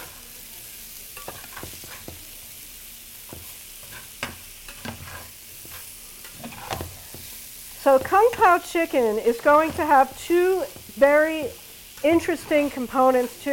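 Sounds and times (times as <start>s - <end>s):
food sizzling in a hot pan: 0.0s - 13.5s
utensil stirring and scraping: 3.3s - 13.5s
speech: 7.9s - 13.5s.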